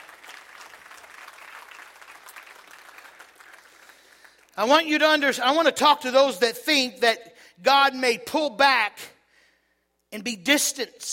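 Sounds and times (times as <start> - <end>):
audience clapping: 0.0 - 4.8
speech: 4.6 - 9.1, 10.1 - 11.1.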